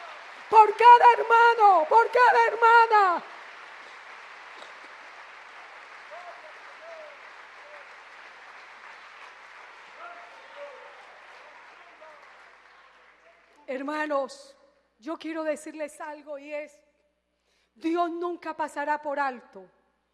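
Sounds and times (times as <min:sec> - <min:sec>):
audience applause: 0:00.0 - 0:13.7
speech: 0:00.5 - 0:03.3, 0:13.7 - 0:16.8, 0:17.8 - 0:19.8.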